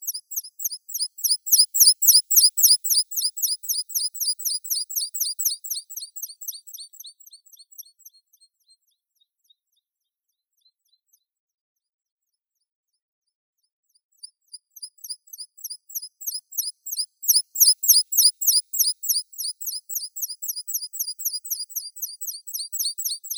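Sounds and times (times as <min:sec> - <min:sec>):
meadow pipit Anthus pratensis: 0:00.9 - 0:06.6, 0:15.6 - 0:23.3.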